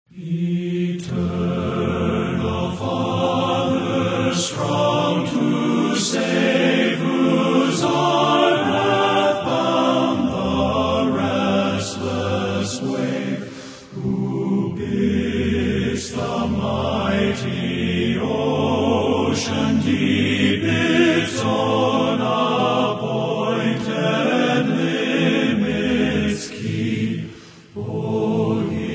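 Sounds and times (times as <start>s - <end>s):
men's chorus singing: 0.1s - 28.9s.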